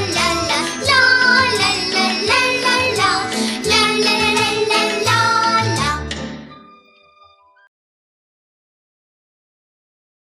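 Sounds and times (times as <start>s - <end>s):
children's choir singing: 0.0s - 6.2s.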